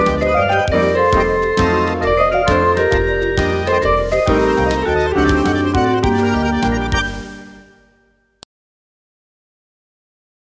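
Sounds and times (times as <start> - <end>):
jazz waltz: 0.0 - 7.9.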